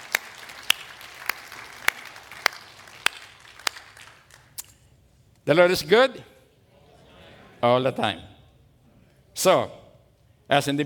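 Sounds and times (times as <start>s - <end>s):
audience clapping: 0.0s - 4.7s
speech: 5.5s - 6.3s, 7.6s - 8.3s, 9.4s - 9.8s, 10.5s - 10.8s.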